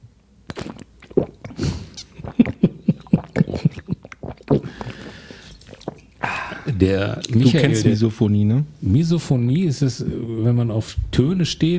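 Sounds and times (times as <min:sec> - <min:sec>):
wet chewing: 0:00.5 - 0:07.5
gulping swallow: 0:00.5 - 0:07.6
speech: 0:06.8 - 0:11.7.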